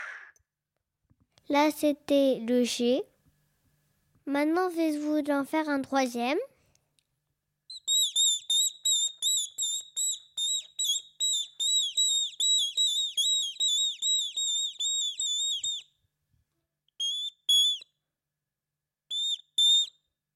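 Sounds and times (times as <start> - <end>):
speech: 1.5 - 3.1, 4.3 - 6.5
person whistling an imitation of a tit's song: 7.7 - 16.0, 17.0 - 17.9, 19.1 - 20.1.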